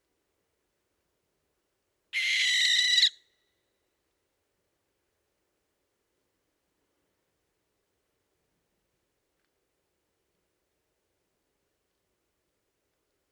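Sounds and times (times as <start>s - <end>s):
barn owl Tyto alba calling: 2.2s - 3.2s.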